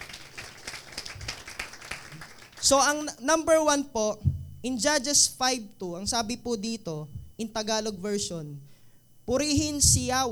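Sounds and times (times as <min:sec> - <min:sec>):
church congregation clapping: 0:00.0 - 0:02.8
speech: 0:02.6 - 0:08.7, 0:09.3 - 0:10.3.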